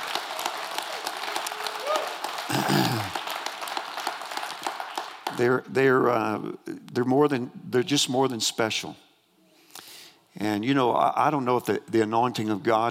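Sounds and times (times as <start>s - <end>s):
audience applause: 0.0s - 5.4s
speech: 5.4s - 9.0s, 10.4s - 12.8s.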